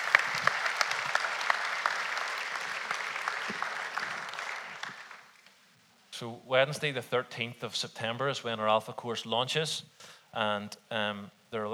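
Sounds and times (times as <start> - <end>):
round of applause: 0.0 - 5.5
speech: 6.2 - 11.7.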